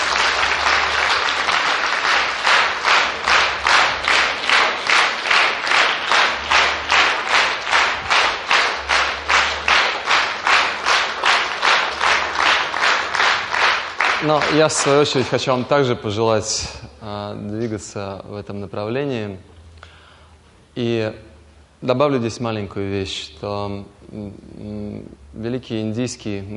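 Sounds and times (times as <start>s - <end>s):
audience applause: 0.0s - 15.3s
speech: 14.3s - 19.5s, 20.8s - 26.5s.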